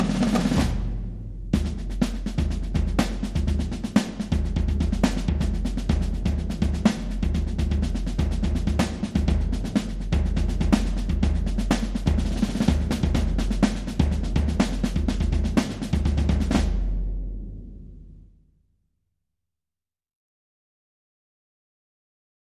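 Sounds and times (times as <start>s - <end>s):
marching band: 0.0s - 17.0s.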